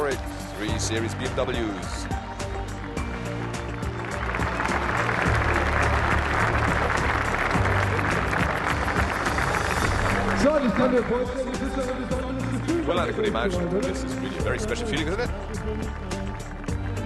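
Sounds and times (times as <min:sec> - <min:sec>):
large crowd applause: 0:00.0 - 0:17.0
speech: 0:00.8 - 0:02.2, 0:10.6 - 0:12.2, 0:12.8 - 0:16.1.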